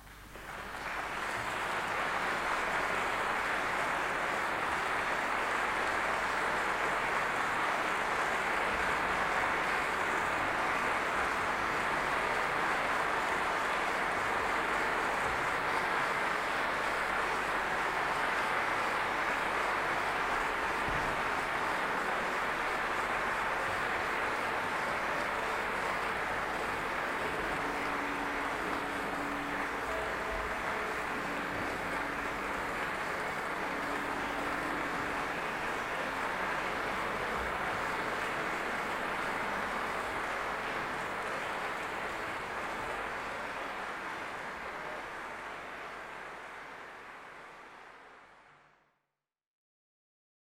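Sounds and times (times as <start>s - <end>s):
applause: 0.0s - 49.1s.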